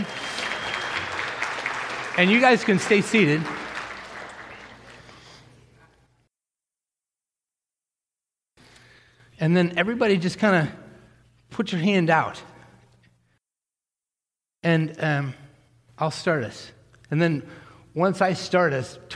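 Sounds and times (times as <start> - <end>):
audience applause: 0.0 - 5.5
speech: 2.2 - 3.6, 9.4 - 10.8, 11.5 - 12.5, 14.6 - 15.4, 16.0 - 19.1.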